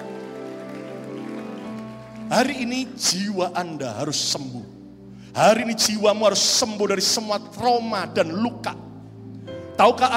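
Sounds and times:
applause: 0:00.0 - 0:03.5
speech: 0:02.3 - 0:08.8, 0:09.8 - 0:10.1.

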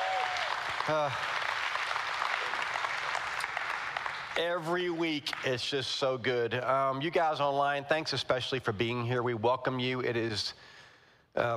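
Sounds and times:
congregation at Austin Christian Fellowship applauding the worship team: 0:00.0 - 0:05.8
speech: 0:00.9 - 0:01.3, 0:04.4 - 0:10.7, 0:11.4 - 0:11.5.

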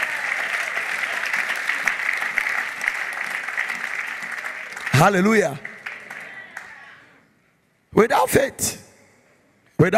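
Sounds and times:
audience applause: 0:00.0 - 0:07.2
speech: 0:05.0 - 0:05.7, 0:08.0 - 0:08.8, 0:09.8 - 0:09.9.

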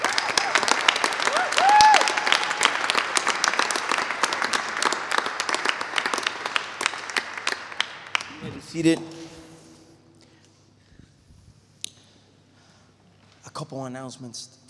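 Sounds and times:
audience applause: 0:00.0 - 0:08.9
whistle or whoop: 0:01.3 - 0:02.2
speech: 0:08.8 - 0:09.1, 0:13.7 - 0:14.6.

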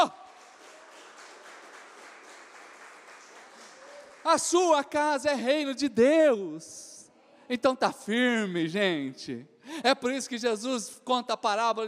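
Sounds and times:
audience applauding: 0:00.0 - 0:04.6
speech: 0:04.2 - 0:06.9, 0:07.5 - 0:11.8.

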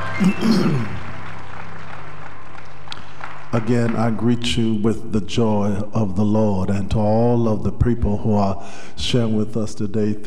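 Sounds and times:
audience hand clapping in praise: 0:00.0 - 0:04.8
speech: 0:00.2 - 0:01.0, 0:03.5 - 0:10.2.

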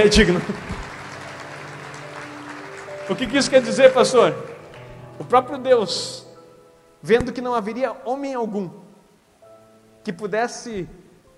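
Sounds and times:
speech: 0:00.0 - 0:00.7, 0:03.1 - 0:04.5, 0:05.2 - 0:06.2, 0:07.0 - 0:08.8, 0:10.0 - 0:11.0
audience applause: 0:00.0 - 0:05.3.

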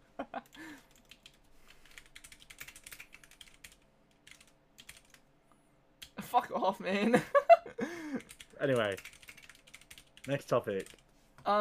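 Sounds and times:
computer keyboard typing: 0:00.4 - 0:05.2, 0:08.2 - 0:11.0
speech: 0:06.3 - 0:07.4, 0:08.1 - 0:09.2, 0:10.3 - 0:11.5.

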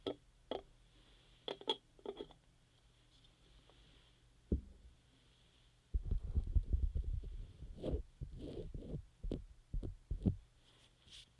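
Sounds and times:
ear massage rubbing, stroking and tapping: 0:05.9 - 0:11.3.

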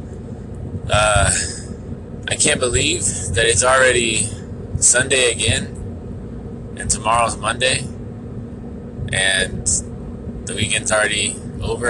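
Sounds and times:
faint tonal whine: 0:00.0 - 0:11.8
road rumble from inside a car driven to jiu-jitsu: 0:00.0 - 0:11.8
speech: 0:00.9 - 0:01.6, 0:02.3 - 0:05.8, 0:06.8 - 0:07.9, 0:09.1 - 0:11.8.

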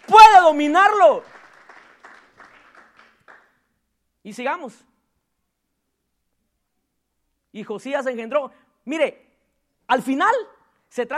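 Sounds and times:
applause: 0:00.0 - 0:03.7
speech: 0:00.5 - 0:01.4, 0:04.2 - 0:04.9, 0:07.6 - 0:09.2, 0:09.9 - 0:11.1.

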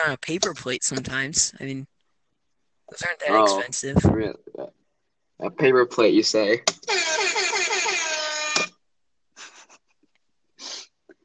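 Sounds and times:
speech: 0:00.0 - 0:01.9, 0:02.9 - 0:04.7, 0:05.4 - 0:07.4
air horn sound effect: 0:06.9 - 0:08.7.

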